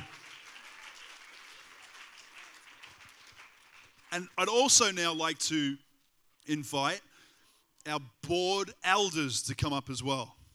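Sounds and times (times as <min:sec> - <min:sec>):
audience clapping and cheering: 0:00.0 - 0:04.7
speech: 0:04.1 - 0:05.8, 0:06.4 - 0:07.1, 0:07.8 - 0:10.4.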